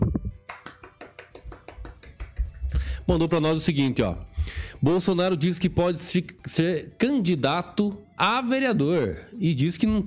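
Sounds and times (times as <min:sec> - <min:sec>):
applause: 0:00.4 - 0:02.6
speech: 0:03.1 - 0:10.0.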